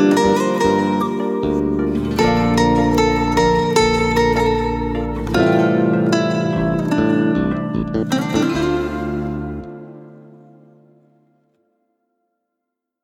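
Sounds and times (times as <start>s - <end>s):
flute playing: 0.0s - 10.2s.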